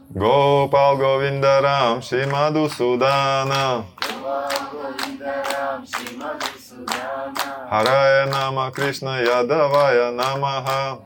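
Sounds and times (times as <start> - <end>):
person chanting: 0.0 - 11.0
speech: 0.1 - 11.0
hand claps: 2.2 - 11.0.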